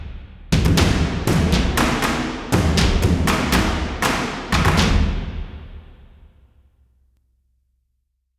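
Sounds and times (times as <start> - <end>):
combat music: 0.5 - 6.1.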